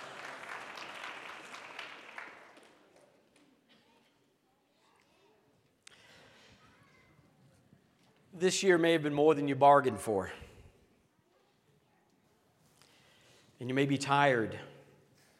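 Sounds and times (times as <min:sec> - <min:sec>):
audience applause: 0:00.0 - 0:03.1
speech: 0:08.4 - 0:10.4, 0:13.6 - 0:14.7.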